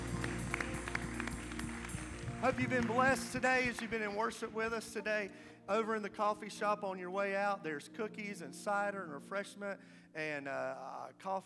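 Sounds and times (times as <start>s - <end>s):
audience clapping along in rhythm: 0.0s - 5.1s
sustained low musical tone: 0.0s - 7.1s
speech: 2.4s - 11.4s.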